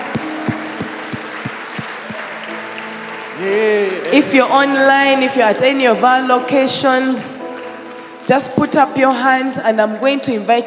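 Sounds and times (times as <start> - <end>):
audience clapping: 0.0 - 6.0
speech: 3.4 - 7.3, 8.3 - 10.6.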